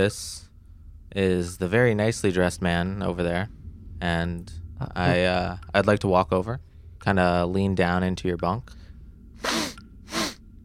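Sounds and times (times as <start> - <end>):
speech: 0.0 - 0.4, 1.2 - 8.8
person sniffing: 9.4 - 10.4.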